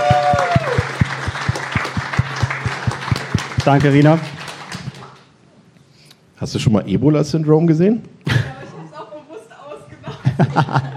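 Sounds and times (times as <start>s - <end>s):
steady rhythmic thumps: 0.0s - 5.2s
audience applause: 0.0s - 5.3s
speech: 3.6s - 4.3s, 6.4s - 8.2s, 10.5s - 10.9s
laughter: 9.9s - 10.9s.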